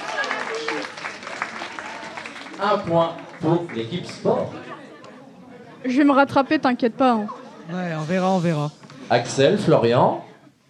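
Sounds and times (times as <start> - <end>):
applause for a contestant on a sports quiz game show: 0.0 - 4.5
speech: 2.6 - 4.8, 5.8 - 10.3.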